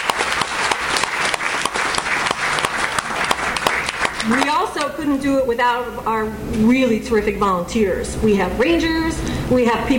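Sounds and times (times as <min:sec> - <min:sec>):
audience applause: 0:00.0 - 0:04.8
speech: 0:04.3 - 0:09.9.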